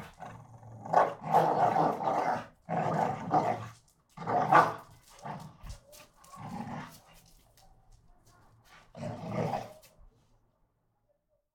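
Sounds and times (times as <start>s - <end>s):
Pit bull dogs fighting: 0.0s - 7.0s.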